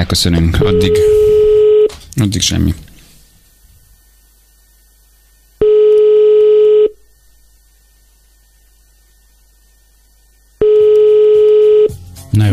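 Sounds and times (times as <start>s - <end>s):
speech: 0.0s - 1.4s, 2.2s - 2.8s
telephone line tone while a radio morning show rings a listener: 0.6s - 1.9s, 5.6s - 7.0s, 10.6s - 11.9s.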